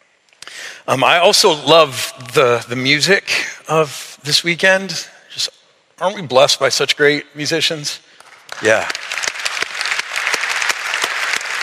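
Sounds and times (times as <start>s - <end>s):
speech: 0.8s - 9.0s
church audience applause: 8.3s - 11.6s.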